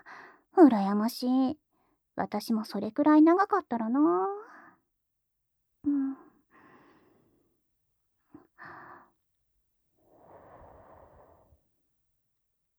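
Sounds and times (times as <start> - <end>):
speech: 0.6 - 4.5
soft puffs of breath blown onto someone's eyelashes: 10.1 - 11.6.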